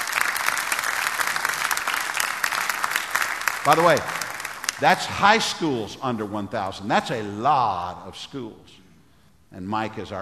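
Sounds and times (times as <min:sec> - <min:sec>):
audience applause: 0:00.0 - 0:05.5
speech: 0:03.6 - 0:04.2, 0:04.8 - 0:08.8, 0:09.5 - 0:10.2.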